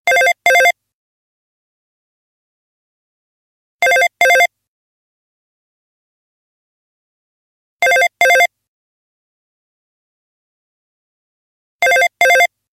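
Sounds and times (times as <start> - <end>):
office phone ringing: 0.1 - 0.8, 3.8 - 4.5, 7.8 - 8.5, 11.8 - 12.5.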